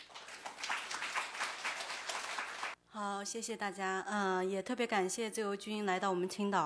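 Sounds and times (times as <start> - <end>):
audience applause: 0.0 - 2.8
speech: 3.0 - 6.6.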